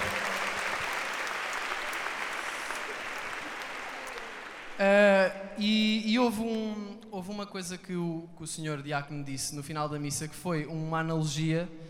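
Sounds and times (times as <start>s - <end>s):
applause: 0.0s - 4.8s
speech: 4.8s - 11.8s.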